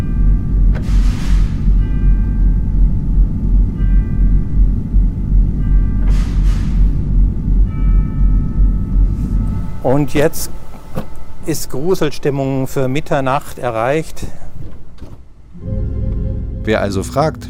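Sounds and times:
tubular bells imitating church bells: 0.0 - 0.7, 1.7 - 6.1, 6.9 - 12.6, 15.6 - 17.4
low rumble: 0.0 - 9.9, 15.5 - 17.4
speech: 9.8 - 10.6, 11.4 - 14.4, 16.7 - 17.4.

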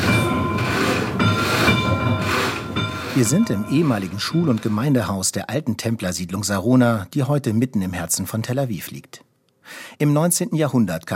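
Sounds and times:
church bell rung by pulling a rope: 0.0 - 5.1
speech: 3.2 - 11.1.

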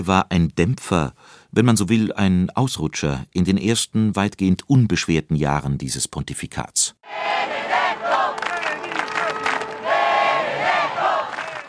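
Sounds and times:
speech: 0.0 - 8.4
crowd chanting and cheering for the Pope: 7.0 - 11.6.

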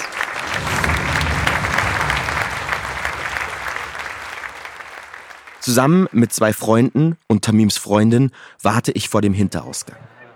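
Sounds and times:
theatre audience standing ovation applause: 0.0 - 6.4
speech: 5.6 - 10.2.

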